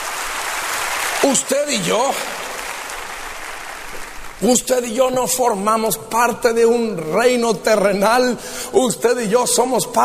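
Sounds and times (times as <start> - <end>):
audience applause: 0.0 - 4.4
speech: 1.2 - 2.4, 4.4 - 10.0.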